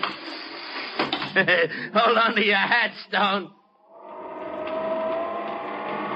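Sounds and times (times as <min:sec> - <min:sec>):
speech: 0:01.3 - 0:03.6
elevator rising toward the roof of a 35-floor building: 0:03.8 - 0:06.1.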